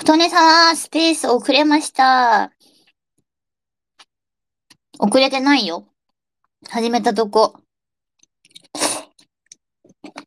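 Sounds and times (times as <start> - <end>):
speech: 0.0 - 2.6, 5.0 - 5.9, 6.6 - 7.6
person slurping ramen noodles at night: 8.5 - 9.2
chewing sounds: 8.5 - 10.2.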